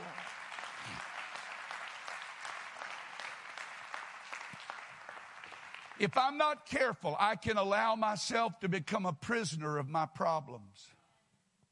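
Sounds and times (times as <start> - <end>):
audience clapping hands: 0.0 - 6.9
speech: 6.0 - 11.0.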